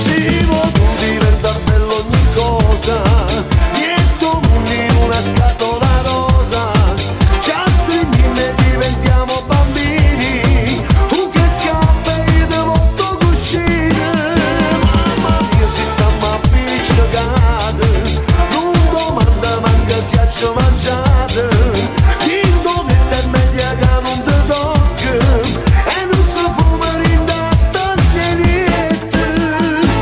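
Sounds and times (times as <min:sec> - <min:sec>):
disco house dance remix: 0:00.0 - 0:30.0.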